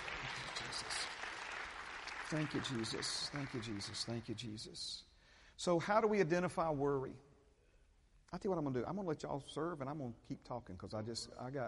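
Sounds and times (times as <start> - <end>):
audience applause: 0.0 - 4.2
speech: 2.3 - 7.3, 8.3 - 11.6.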